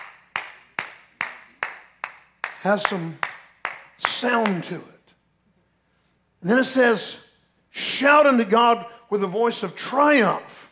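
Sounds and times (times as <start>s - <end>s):
golf clap, light polite clapping: 0.0s - 4.7s
speech: 2.6s - 3.3s, 4.2s - 5.0s, 6.4s - 10.5s.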